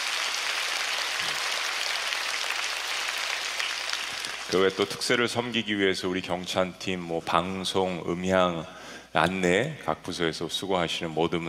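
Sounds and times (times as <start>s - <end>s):
audience clapping: 0.0s - 5.1s
speech: 4.5s - 11.4s.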